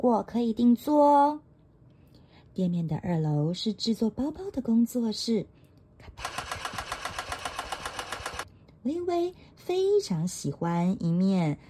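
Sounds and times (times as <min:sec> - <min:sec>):
speech: 0:00.0 - 0:01.5, 0:02.6 - 0:06.4, 0:08.8 - 0:11.6
sewing machine running: 0:06.2 - 0:08.5.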